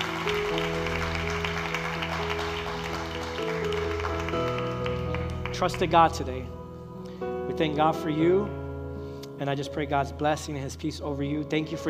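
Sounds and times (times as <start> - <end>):
audience applause: 0.0 - 6.2
speech: 5.6 - 6.6, 7.6 - 8.6, 9.4 - 11.8.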